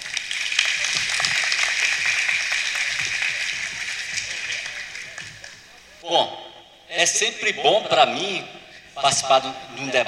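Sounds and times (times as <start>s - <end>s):
audience applause: 0.0s - 5.7s
speech: 7.0s - 10.0s.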